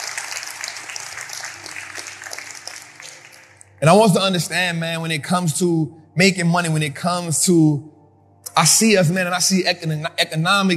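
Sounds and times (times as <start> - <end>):
people clapping: 0.0 - 3.8
speech: 3.8 - 8.0, 8.6 - 10.7.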